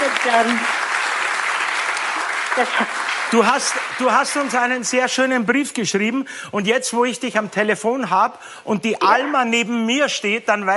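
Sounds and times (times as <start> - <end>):
studio audience applause on a Schlager entertainment show: 0.0 - 5.4
speech: 0.2 - 0.8, 2.6 - 10.7.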